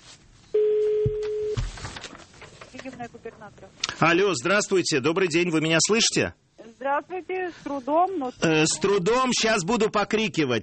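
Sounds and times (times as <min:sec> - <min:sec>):
rustling: 0:00.0 - 0:03.8
telephone ringing tone on a call: 0:00.6 - 0:01.6
speech: 0:03.4 - 0:10.6.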